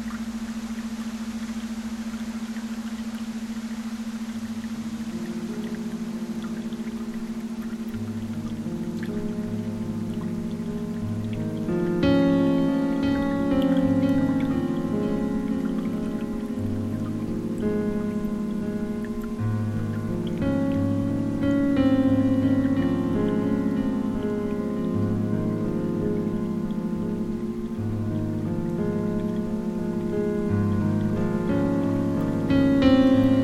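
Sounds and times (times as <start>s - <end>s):
pentatonic melody: 0.0s - 33.4s.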